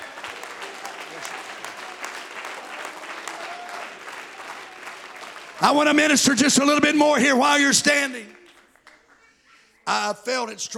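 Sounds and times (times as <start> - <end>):
audience clapping hands: 0.0 - 9.3
speech: 5.6 - 8.4, 9.9 - 10.7.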